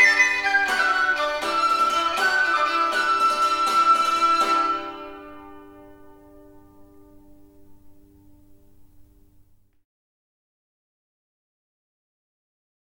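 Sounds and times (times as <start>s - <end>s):
medieval estampie dance music: 0.0s - 7.6s.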